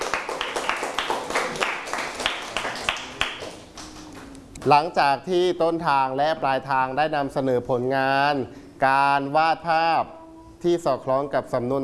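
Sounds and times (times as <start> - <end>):
students clapping: 0.0 - 4.3
speech: 4.6 - 11.8.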